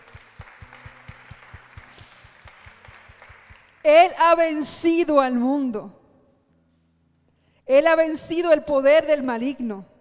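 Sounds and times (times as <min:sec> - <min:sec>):
audience applause: 0:00.0 - 0:03.8
speech: 0:03.8 - 0:06.0, 0:07.7 - 0:09.9.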